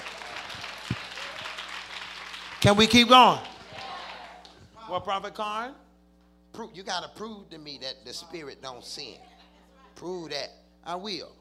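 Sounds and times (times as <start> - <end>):
audience clapping hands: 0.0 - 4.7
speech: 2.6 - 3.5, 4.9 - 5.8, 6.6 - 9.3, 10.0 - 11.4.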